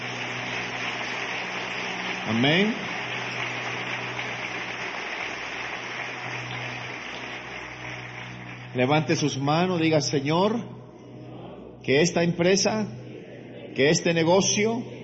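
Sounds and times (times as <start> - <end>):
audience applauding loudly: 0.0 - 9.5
speech: 2.3 - 3.4, 8.8 - 10.8, 11.9 - 13.0, 13.8 - 15.0.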